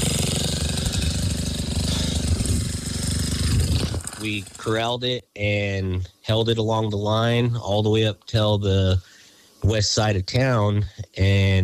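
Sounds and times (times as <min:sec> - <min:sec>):
bulldozer digging into the ground to create a fire break: 0:00.0 - 0:04.8
speech: 0:04.2 - 0:11.6.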